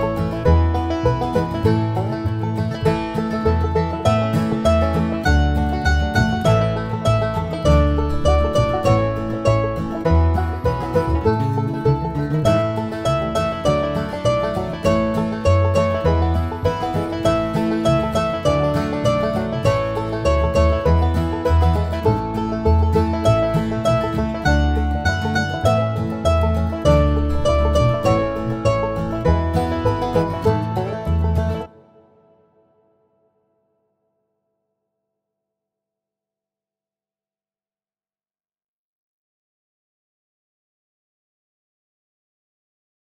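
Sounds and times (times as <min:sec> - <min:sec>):
mandolin: 0:00.0 - 0:32.9.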